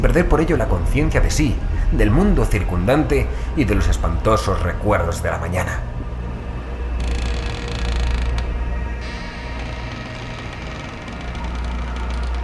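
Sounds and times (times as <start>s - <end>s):
speech: 0.0s - 5.9s
steady low rumble: 0.0s - 12.4s
bedroom door creaking slowly open: 7.0s - 12.4s.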